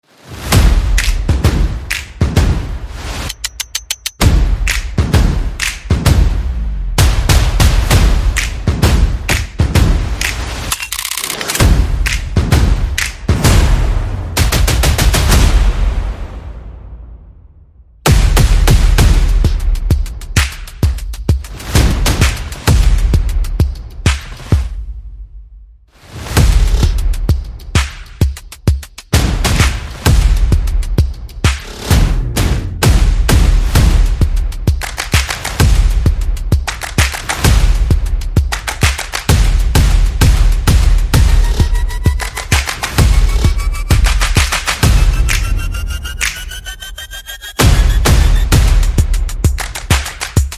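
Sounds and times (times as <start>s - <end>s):
percussion: 0.2s - 17.0s, 18.0s - 50.5s
sound effects: 41.2s - 48.8s.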